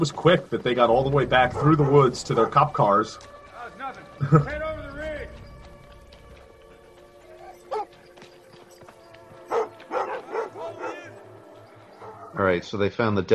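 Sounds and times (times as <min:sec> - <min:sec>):
speech: 0:00.0 - 0:03.4, 0:04.2 - 0:04.6, 0:12.4 - 0:13.3
police dogs barking: 0:00.9 - 0:04.1, 0:06.6 - 0:12.5.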